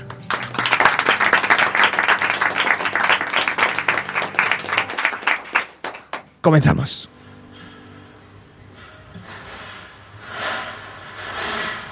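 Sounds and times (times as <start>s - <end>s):
studio audience applause: 0.0s - 6.3s
speech: 6.4s - 7.1s.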